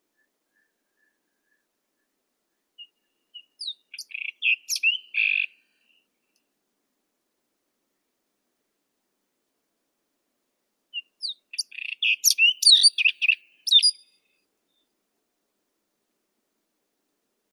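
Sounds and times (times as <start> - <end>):
white-throated robin Irania gutturalis: 0.1 - 6.1, 10.9 - 14.9.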